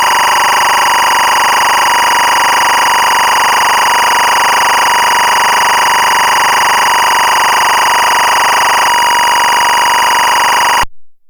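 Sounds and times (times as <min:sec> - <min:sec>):
SMPTE timecode signal at 24 frames: 0:00.0 - 0:10.8.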